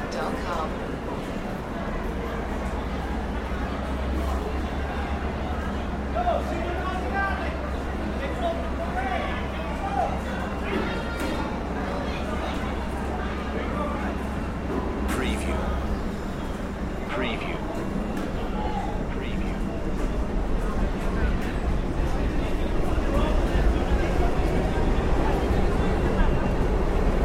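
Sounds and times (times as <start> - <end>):
dense crowd heavy chatter in Central Park NYC: 0.0 - 27.2.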